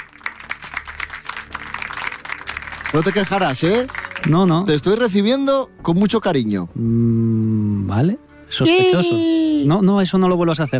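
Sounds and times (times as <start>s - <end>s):
audience applause: 0.0s - 4.6s
speech: 2.9s - 10.7s.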